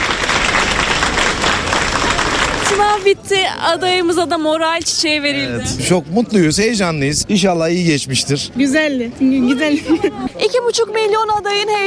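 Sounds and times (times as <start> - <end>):
waiting families applauding university exam candidates: 0.0 - 3.2
speech: 2.8 - 11.8.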